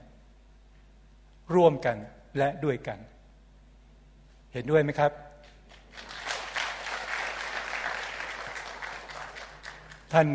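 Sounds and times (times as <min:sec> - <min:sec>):
speech: 0:01.5 - 0:03.2, 0:04.5 - 0:05.3, 0:10.1 - 0:10.3
crowd applauding: 0:05.6 - 0:10.3.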